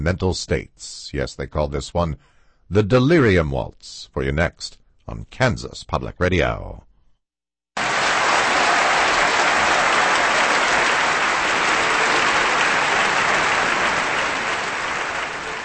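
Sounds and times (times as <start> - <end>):
speech: 0.0 - 6.9
concert audience applause after orchestra performance: 7.8 - 15.6.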